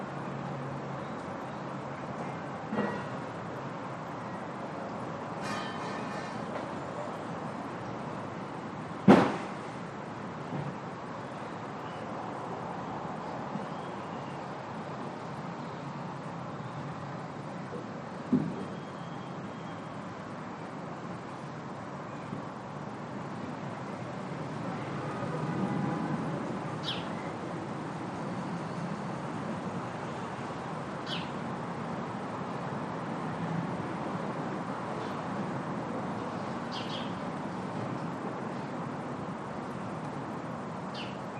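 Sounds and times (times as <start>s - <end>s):
distant traffic: 0.0s - 41.3s
afternoon birds in a residential area: 26.8s - 27.3s, 31.0s - 31.4s, 36.3s - 37.2s, 40.9s - 41.3s.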